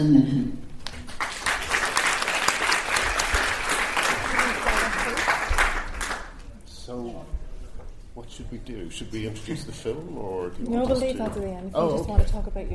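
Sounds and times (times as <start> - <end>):
speech: 0.0 - 0.6, 8.2 - 12.7
audience applauding to welcome guests at a film event: 1.1 - 6.4.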